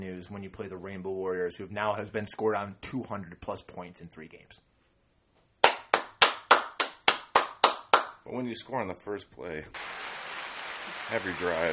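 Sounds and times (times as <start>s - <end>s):
speech: 0.0s - 4.7s, 8.2s - 10.2s, 11.1s - 11.7s
hands clapping: 5.6s - 8.2s, 9.8s - 11.7s.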